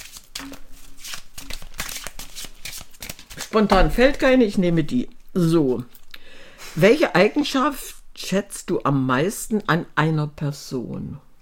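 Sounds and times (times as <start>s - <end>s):
deck of cards being shuffled: 0.0s - 4.3s
speech: 3.5s - 5.9s, 6.8s - 11.2s.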